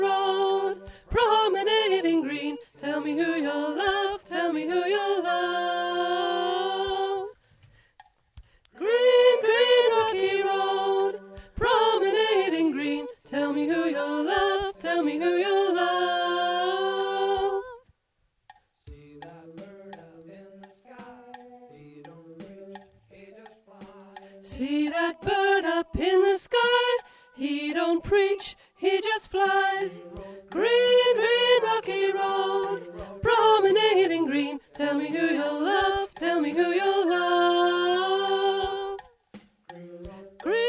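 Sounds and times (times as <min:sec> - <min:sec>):
alto voice singing: 0:00.0 - 0:07.4, 0:08.7 - 0:17.8, 0:18.9 - 0:40.6.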